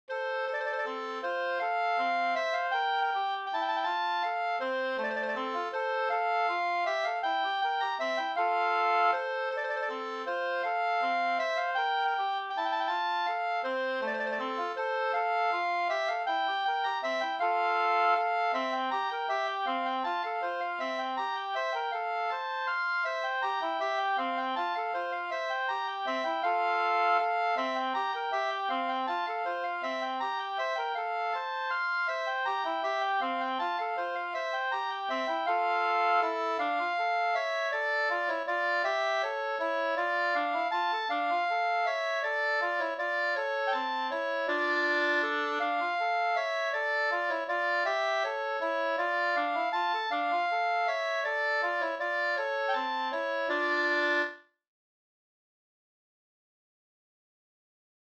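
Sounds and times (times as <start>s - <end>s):
old-time waltz: 0.1s - 54.4s.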